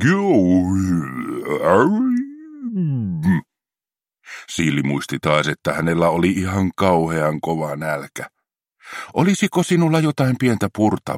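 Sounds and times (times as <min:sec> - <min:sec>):
speech: 0:00.0 - 0:02.1, 0:04.4 - 0:11.1
voice imitating a loud stomach growl: 0:00.0 - 0:03.4.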